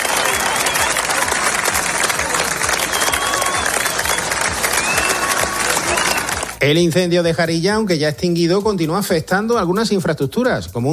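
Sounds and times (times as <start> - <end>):
residents applauding departing firefighters and volunteers: 0.0 - 6.6
speech: 6.6 - 10.9.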